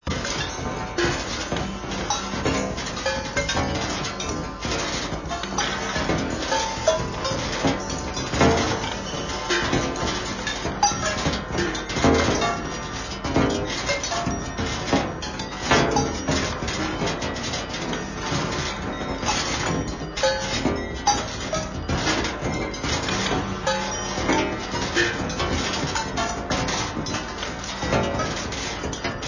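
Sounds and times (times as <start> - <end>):
metal machines: 0.0 - 29.2.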